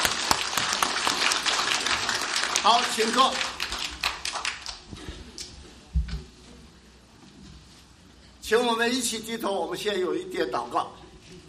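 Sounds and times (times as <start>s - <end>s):
warm applause welcoming audience: 0.0s - 4.9s
speech: 2.6s - 3.6s, 8.5s - 11.0s.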